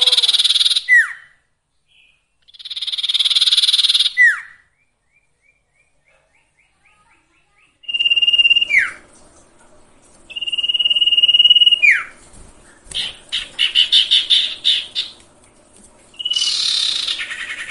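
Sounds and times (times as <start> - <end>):
sirtu cage bird song with buzzy rasping phrases and falling whistled slur: 0.0 - 9.6, 10.2 - 17.6.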